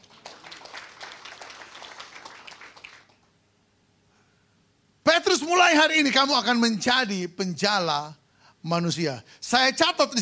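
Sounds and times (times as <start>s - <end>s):
audience applause: 0.0s - 3.3s
speech: 5.2s - 10.2s.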